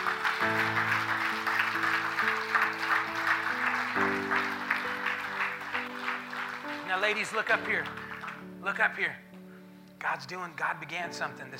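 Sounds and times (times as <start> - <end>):
audience clapping in praise: 0.0 - 8.6
speech: 7.1 - 8.0, 8.6 - 9.2, 10.0 - 11.5.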